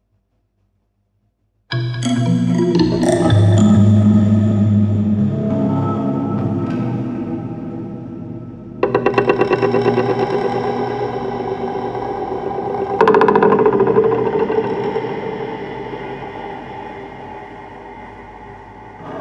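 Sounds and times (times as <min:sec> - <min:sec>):
instrumental background music: 0:01.7 - 0:16.0.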